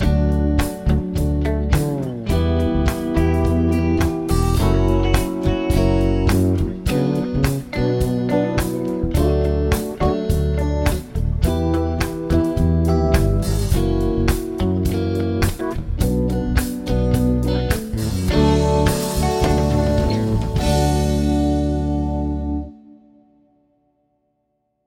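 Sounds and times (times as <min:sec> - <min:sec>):
chord progressions with applied chords: 0:00.0 - 0:23.8.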